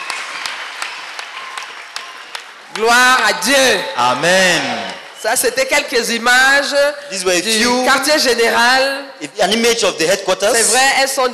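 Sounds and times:
audience clapping rhythmically: 0.0s - 5.2s
speech: 2.8s - 11.3s.

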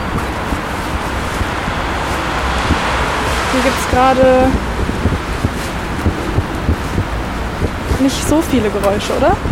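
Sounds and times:
cars: 0.0s - 9.5s
wind outdoors: 0.0s - 9.5s
speech: 3.6s - 4.7s, 8.0s - 9.5s.

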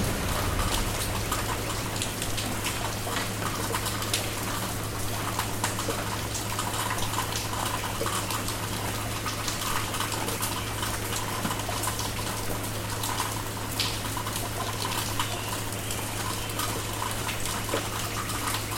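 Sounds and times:
low hum: 0.0s - 3.6s
rain: 0.0s - 18.7s.

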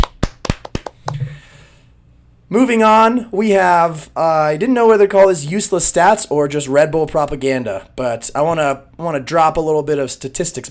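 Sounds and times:
clapping: 0.0s - 1.2s
speech: 2.5s - 10.7s.

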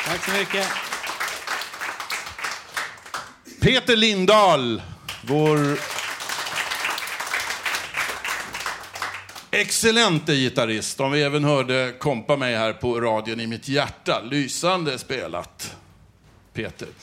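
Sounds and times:
speech: 0.0s - 0.9s, 3.6s - 5.9s, 9.6s - 15.6s, 16.6s - 17.0s
audience applause: 0.0s - 3.4s, 5.1s - 9.5s.

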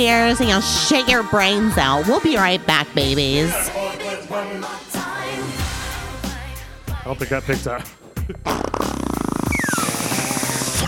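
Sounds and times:
speech: 0.0s - 4.9s, 7.1s - 8.8s
fart: 8.4s - 10.8s.

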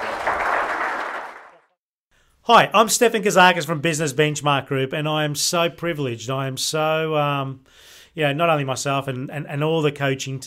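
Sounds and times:
round of applause: 0.0s - 1.8s
speech: 2.4s - 10.4s.

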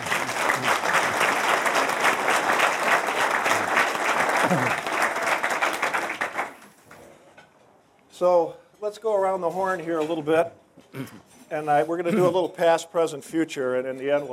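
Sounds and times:
audience applause: 0.0s - 6.7s
speech: 4.5s - 4.8s, 8.2s - 14.3s.

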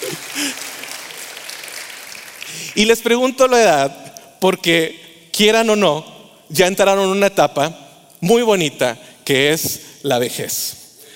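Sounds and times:
audience applause: 0.0s - 2.8s
speech: 2.8s - 10.8s.

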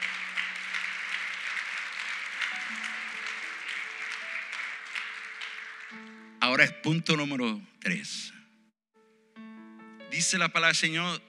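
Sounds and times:
audience applause: 0.0s - 6.4s
speech: 6.0s - 8.4s, 10.2s - 11.2s.

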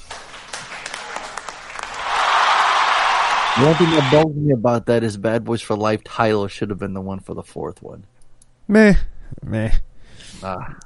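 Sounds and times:
round of applause: 0.0s - 4.2s
speech: 3.6s - 8.1s, 8.7s - 10.8s.

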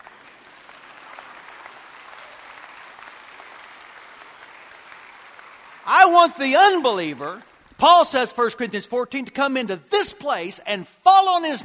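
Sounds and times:
audience clapping: 0.0s - 8.8s
speech: 5.8s - 11.6s.

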